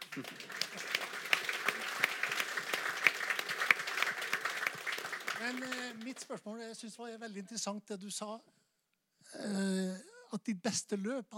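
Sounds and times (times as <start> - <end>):
audience applause: 0.0 - 6.3
speech: 0.2 - 0.4, 5.5 - 8.6, 9.3 - 11.3.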